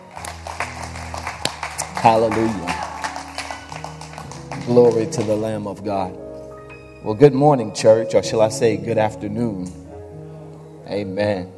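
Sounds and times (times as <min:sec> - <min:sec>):
audience clapping hands: 0:00.0 - 0:05.8
speech: 0:02.0 - 0:02.7, 0:04.7 - 0:06.2, 0:07.0 - 0:09.8, 0:10.9 - 0:11.5.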